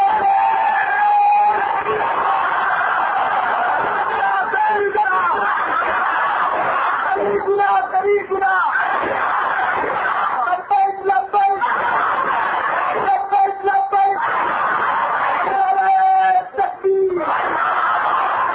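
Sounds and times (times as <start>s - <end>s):
crowd shouting organization's slogan: 0.0s - 18.5s
laughter: 1.6s - 7.7s, 8.5s - 18.5s.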